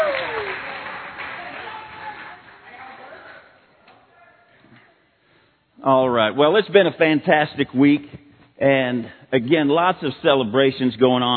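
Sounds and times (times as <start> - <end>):
crowd applause: 0.0 - 3.2
speech: 5.8 - 11.3.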